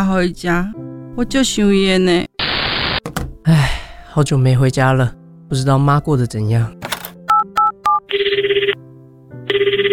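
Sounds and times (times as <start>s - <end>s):
speech: 0.1s - 2.3s, 3.4s - 6.8s
telephone dialing beeps: 7.3s - 8.8s, 9.5s - 9.9s
telephone ringing: 7.3s - 8.8s, 9.5s - 9.9s.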